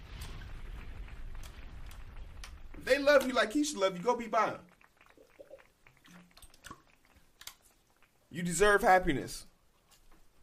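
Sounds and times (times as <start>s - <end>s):
bomb explosion sound effect with deep rumbling roar: 0.0s - 3.1s
sharp crackling bursts: 0.0s - 8.8s
speech: 2.8s - 4.7s, 8.4s - 9.5s.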